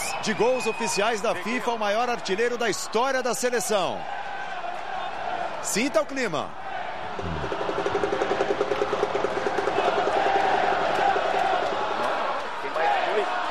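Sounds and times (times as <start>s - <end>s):
large stadium crowd roaring: 0.0s - 13.4s
speech: 0.2s - 4.2s, 5.6s - 7.5s
rhythmic clapping or chanting: 7.1s - 13.4s.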